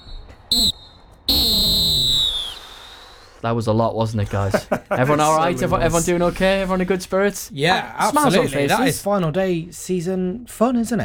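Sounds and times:
halftime whistle blown: 0.0 - 3.4
speech: 0.5 - 1.5, 3.4 - 11.0
laughter: 4.2 - 7.0, 7.6 - 9.1.

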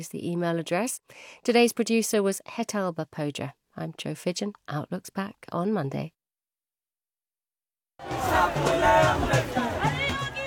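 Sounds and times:
speech: 0.0 - 6.2, 8.0 - 9.7
protest crowd noise in India: 8.0 - 10.4.

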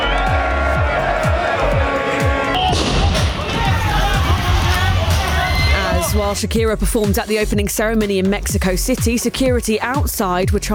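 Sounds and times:
large stadium crowd roaring at World Cup opening: 0.0 - 6.4
rhythmic low thumps: 0.0 - 10.7
speech: 6.3 - 10.7.

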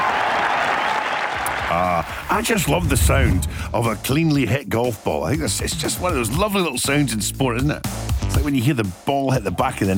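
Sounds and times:
golf crowd cheering and applauding: 0.0 - 2.6
speech: 1.7 - 9.9.

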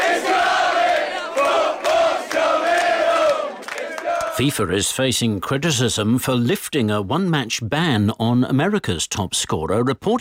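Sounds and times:
stadium crowd singing: 0.0 - 4.4
speech: 4.4 - 10.1.

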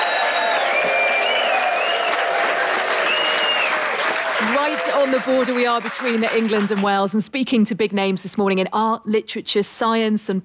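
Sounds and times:
audience applause at the Hay Literary Festival in Hay-on-Wye, Wales: 0.0 - 6.9
speech: 4.8 - 10.4.

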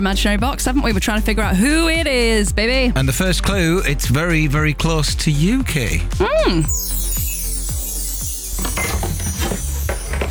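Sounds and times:
speech: 0.0 - 6.9
cup rattling as it rolls: 6.7 - 10.2.

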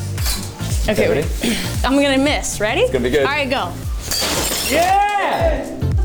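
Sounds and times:
speech: 0.9 - 3.9, 4.7 - 5.8
object struck with a pole shattering in a rage room: 4.0 - 5.4.

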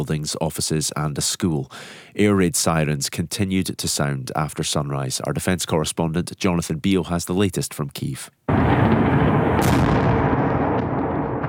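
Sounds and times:
speech: 0.0 - 10.0
heavy booming explosions: 8.5 - 11.4
rapid anti-aircraft fire: 8.5 - 11.4.

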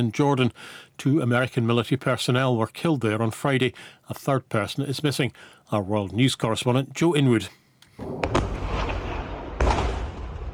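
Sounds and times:
speech: 0.0 - 8.5
heavy explosive booms from Iranian strikes on a US airbase in Jordan: 8.0 - 10.5.

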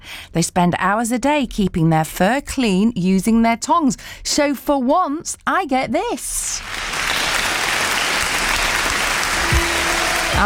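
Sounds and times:
speech: 0.3 - 6.8
audience applause: 6.6 - 10.4.

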